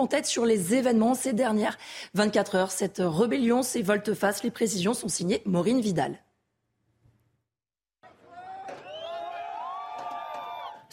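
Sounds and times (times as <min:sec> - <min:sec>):
speech: 0:00.0 - 0:06.3
crowd cheering and shouting: 0:08.0 - 0:10.9.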